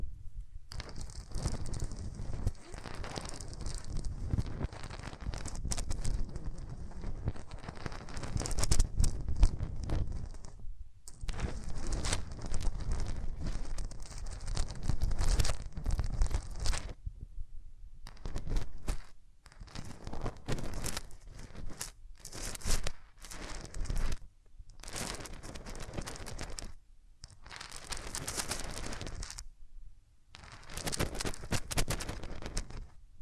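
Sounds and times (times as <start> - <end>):
hands rubbing over the microphone: 0.7 - 17.0, 18.1 - 24.2, 24.8 - 29.4, 30.4 - 33.0.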